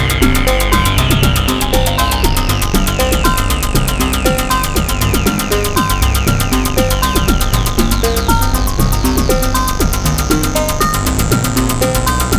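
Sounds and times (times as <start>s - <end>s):
synthesizer: 0.0s - 12.3s.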